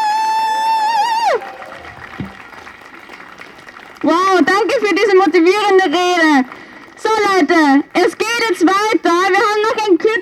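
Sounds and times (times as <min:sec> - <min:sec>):
crowd applauding after a speech: 0:00.2 - 0:10.0.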